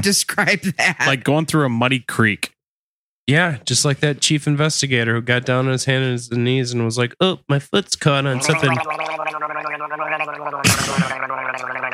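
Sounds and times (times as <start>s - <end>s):
speech: 0.0s - 2.5s, 3.3s - 9.5s
person gargling water: 8.4s - 11.9s.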